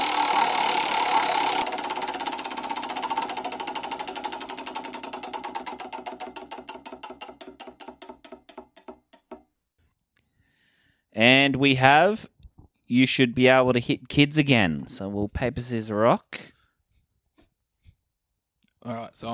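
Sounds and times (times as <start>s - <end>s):
prize wheel spinning: 0.0s - 8.2s
speech: 11.2s - 12.3s, 12.9s - 16.4s.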